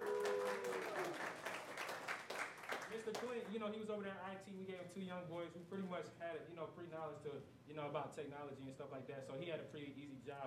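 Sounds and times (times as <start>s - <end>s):
hand clap applause: 0.0s - 3.6s
speech: 3.0s - 10.4s.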